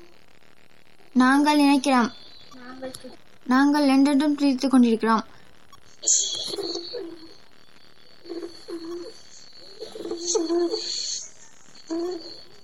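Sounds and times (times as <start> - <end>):
faint steady high-pitched hum: 0.0 - 12.6
speech: 1.2 - 2.2, 2.8 - 5.3, 6.0 - 6.7, 10.3 - 11.0, 11.9 - 12.4
dove cooing: 6.2 - 7.4, 8.2 - 11.0, 11.9 - 12.5.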